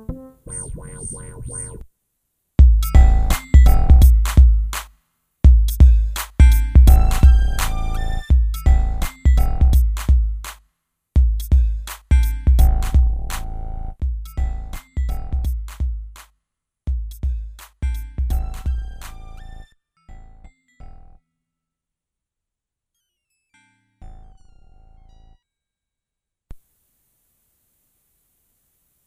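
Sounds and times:
creepy urban rap beat: 2.6s - 4.8s, 5.5s - 10.3s, 11.2s - 15.9s, 17.1s - 19.4s.

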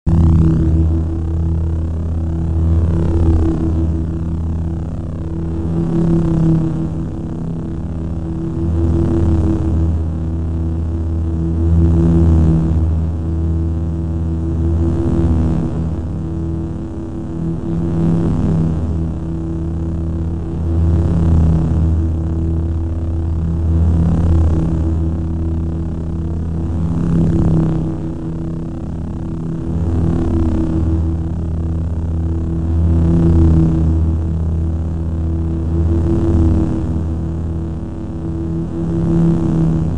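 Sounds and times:
saber drone: 0.1s - 39.9s.

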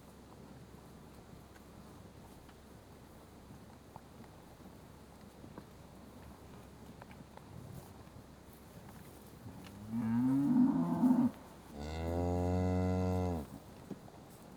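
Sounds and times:
South Devon cattle mooing while being fed: 9.8s - 13.5s.

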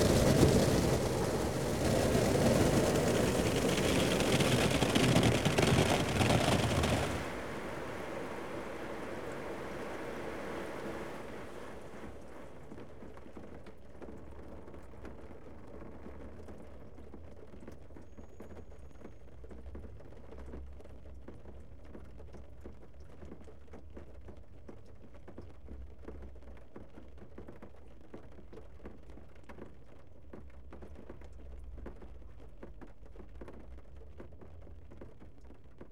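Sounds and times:
car wash: 0.0s - 12.6s.

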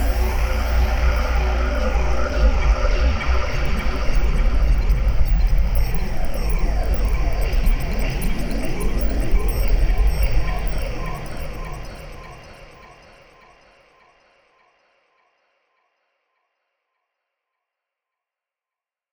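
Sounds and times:
creepy 70s sci-fi ambience: 0.0s - 13.5s.

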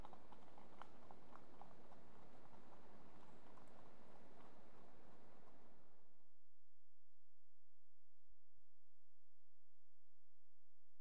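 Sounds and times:
two horses trotting on gravel: 0.0s - 5.6s.

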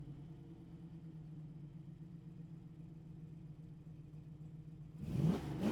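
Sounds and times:
1969 Pontiac Firebird engine starting: 5.0s - 5.7s.

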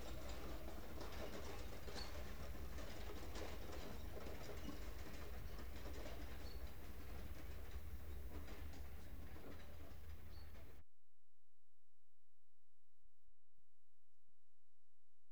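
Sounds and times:
one horse and cart passing at walk: 0.0s - 10.8s.

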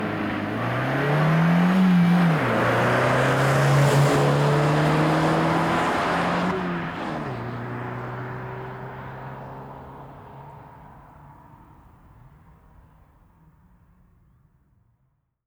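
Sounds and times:
Volkswagen Golf V 1.6 FSI stopping, reversing and driving away: 0.0s - 10.8s.

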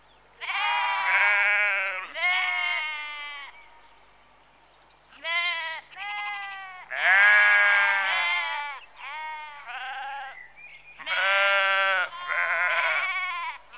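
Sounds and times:
sheep bleating in a rural outdoor setting: 0.4s - 3.5s, 5.2s - 10.4s, 11.0s - 13.7s.

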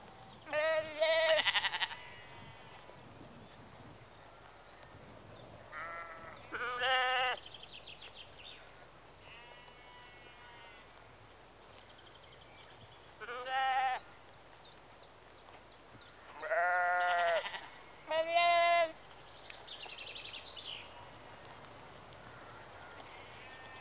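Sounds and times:
sheep bleating in a rural exterior atmosphere in early evening: 0.5s - 2.4s, 5.7s - 7.4s, 9.2s - 10.9s, 13.2s - 14.0s, 16.4s - 19.0s.

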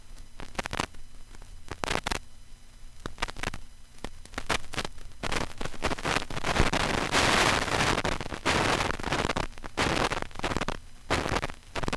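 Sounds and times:
vinyl crackle: 3.1s - 11.9s.

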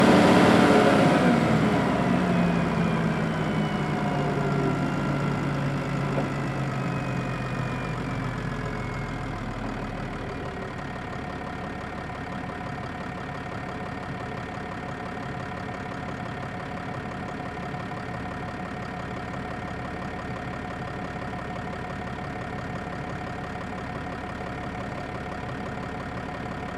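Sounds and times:
1996 Volvo L90C wheel loader driving, heard onboard: 0.0s - 10.8s
Volvo L90C wheel loader engine shutting off: 0.0s - 26.7s.

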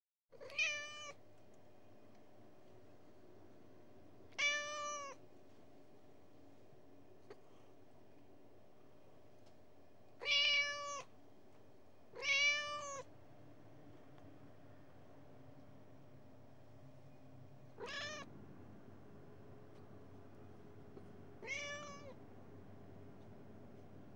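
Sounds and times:
Persian cat meowing: 0.4s - 1.2s, 4.3s - 5.2s, 10.2s - 11.1s, 12.1s - 13.1s, 17.8s - 18.3s, 21.4s - 22.2s.

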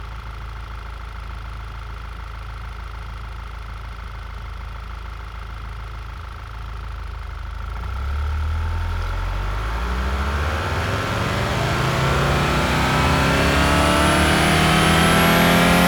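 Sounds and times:
Audi A4 allroad 20TFSI engine revving at different rpm: 8.8s - 15.8s.

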